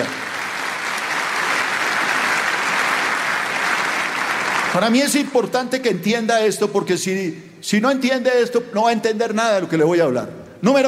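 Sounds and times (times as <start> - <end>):
audience applause: 0.0 - 5.0
speech: 4.8 - 10.8.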